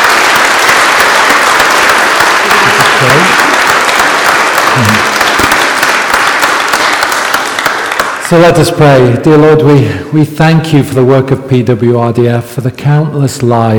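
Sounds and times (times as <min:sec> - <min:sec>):
audience applause: 0:00.0 - 0:09.2
speech: 0:08.3 - 0:13.7.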